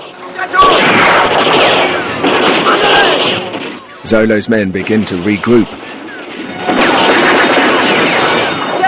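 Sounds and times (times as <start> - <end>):
speech: 0.3 - 0.8, 4.1 - 6.5
gunshot fired from a wall: 0.6 - 3.9, 6.4 - 8.7.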